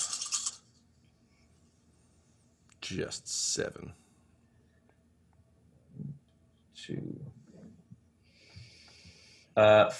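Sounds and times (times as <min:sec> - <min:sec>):
dice tumbling across a hard surface: 0:00.0 - 0:00.6
speech: 0:02.9 - 0:04.0, 0:06.9 - 0:07.4, 0:09.6 - 0:09.9.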